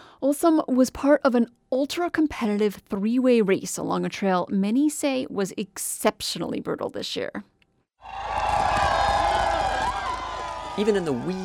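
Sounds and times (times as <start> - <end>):
speech: 0.2 - 8.4, 10.8 - 11.4
dense crowd cheering a sled dog musher on Front Street in Nome, Alaska: 8.0 - 11.4.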